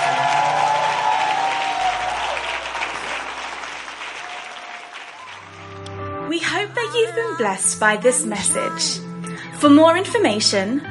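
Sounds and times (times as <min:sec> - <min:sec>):
audience applause: 0:00.0 - 0:06.0
speech: 0:06.9 - 0:10.9.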